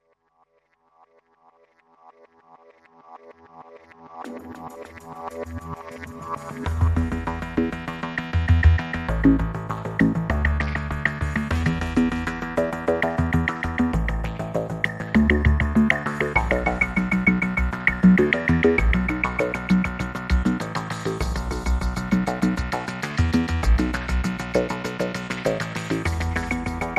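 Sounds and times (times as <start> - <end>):
ambient dub music: 2.6 - 26.9.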